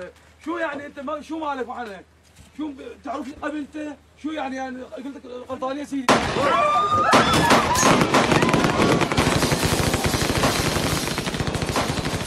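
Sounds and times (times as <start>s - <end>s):
speech: 0.0s - 8.3s
faint shouting voices: 6.3s - 10.0s
gunfire in a film scene: 7.1s - 12.2s.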